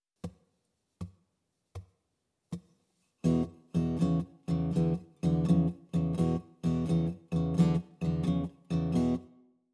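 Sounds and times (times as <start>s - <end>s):
blues guitar in open tunings: 3.2s - 9.4s.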